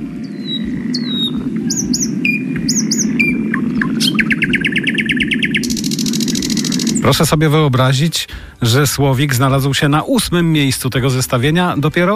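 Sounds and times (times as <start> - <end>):
lesser whitethroat singing with warbled notes and rattling trill: 0.0 - 7.3
low outdoor rumble: 0.0 - 12.1
speech: 7.0 - 12.1.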